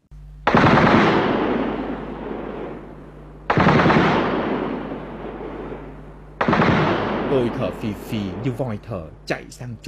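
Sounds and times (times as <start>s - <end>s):
machine-gun fire in long sustained bursts: 0.4s - 2.9s, 3.5s - 8.6s
speech: 7.3s - 9.8s.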